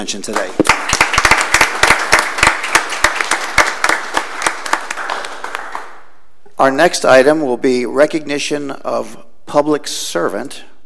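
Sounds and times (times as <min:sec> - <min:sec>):
speech: 0:00.0 - 0:00.9, 0:06.6 - 0:10.7
audience applause: 0:00.6 - 0:06.0.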